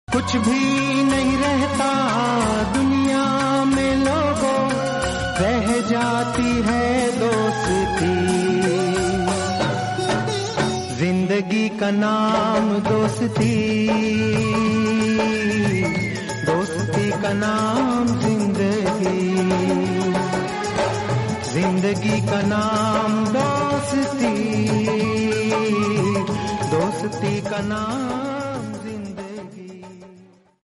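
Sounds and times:
instrumental song: 0:00.1 - 0:30.6.

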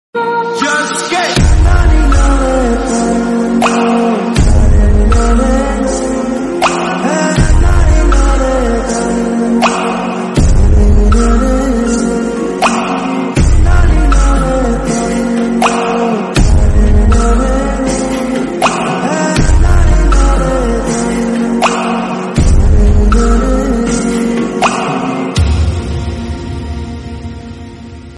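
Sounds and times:
instrumental background music: 0:00.2 - 0:28.1.

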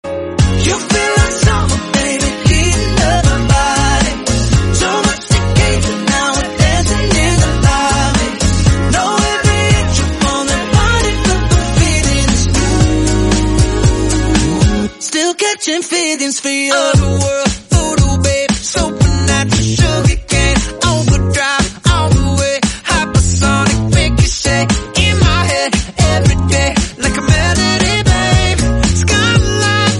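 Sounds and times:
English pop song with vocals: 0:00.0 - 0:29.9.

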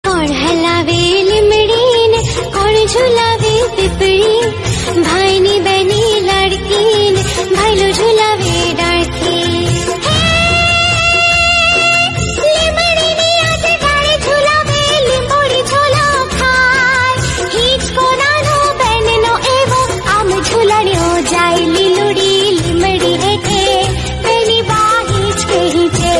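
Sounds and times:
instrumental music: 0:00.1 - 0:26.1.

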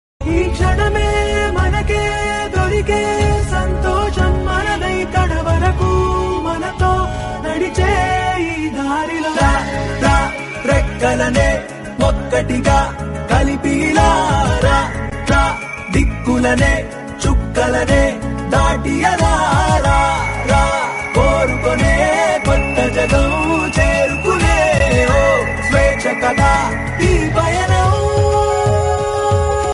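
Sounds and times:
Kannada background music: 0:00.2 - 0:29.7.

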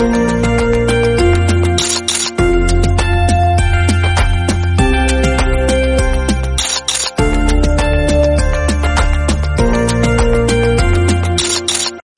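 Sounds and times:
techno background music: 0:00.2 - 0:12.0.

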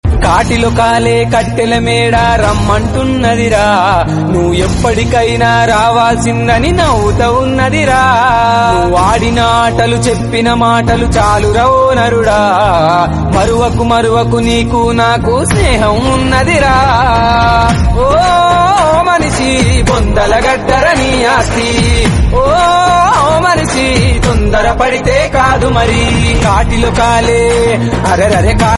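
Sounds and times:
Telugu song: 0:00.0 - 0:28.7.

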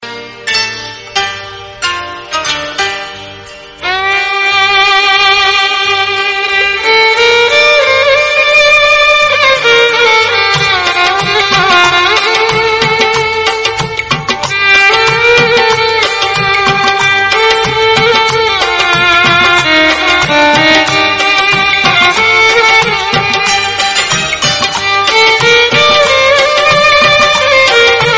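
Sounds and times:
instrumental music: 0:00.0 - 0:28.1.

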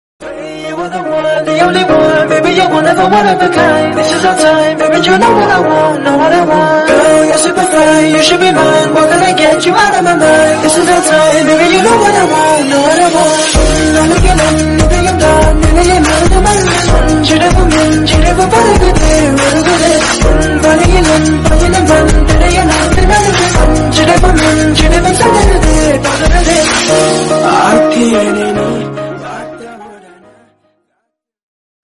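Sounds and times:
Kannada love song: 0:00.2 - 0:30.6.

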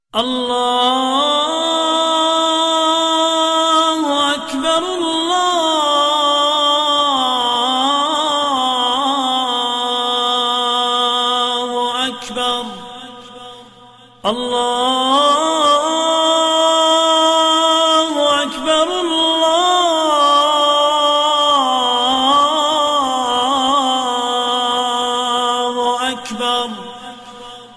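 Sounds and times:
Islamic call to prayer during Ramzan: 0:00.2 - 0:27.7.

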